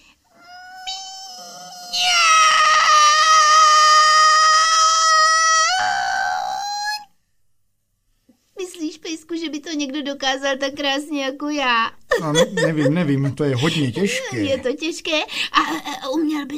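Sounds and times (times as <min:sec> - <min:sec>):
person imitating a cat meowing: 0:00.4 - 0:07.1
speech: 0:09.7 - 0:16.5
laughter: 0:12.1 - 0:14.6.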